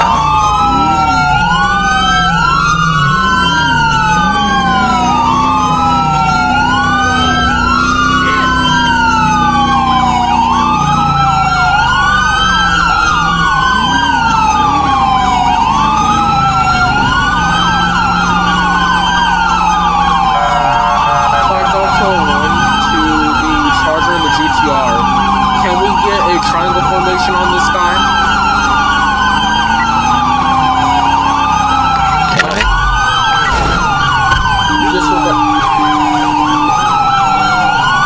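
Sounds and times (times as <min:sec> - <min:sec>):
ambulance siren during pursuit: 0:00.0 - 0:38.0
low rumble: 0:32.6 - 0:36.6.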